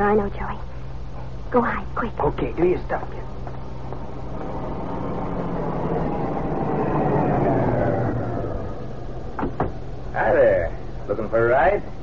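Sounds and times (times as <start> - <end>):
speech: 0.0 - 0.6, 1.5 - 3.4, 11.1 - 12.0
car approaching and stopping: 3.4 - 11.6.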